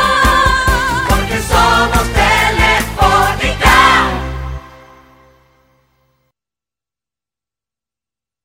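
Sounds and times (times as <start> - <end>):
anthem music: 0.0 - 6.2.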